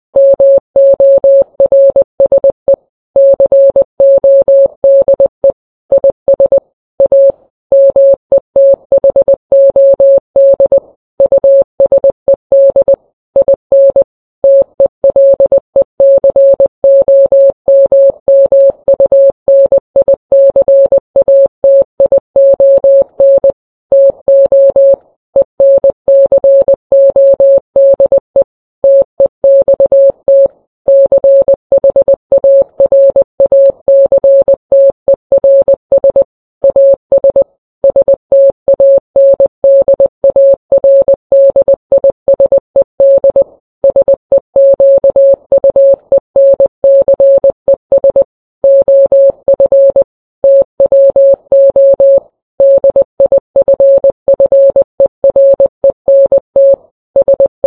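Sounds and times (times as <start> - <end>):
morse code beeps: 0.2 - 57.6.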